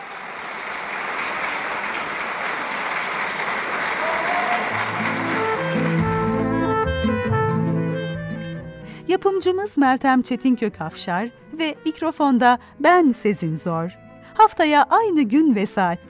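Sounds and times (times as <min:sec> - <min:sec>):
audience applause in tribute to an opera singer: 0:00.0 - 0:07.0
instrumental music: 0:04.8 - 0:16.0
speech: 0:09.2 - 0:16.0.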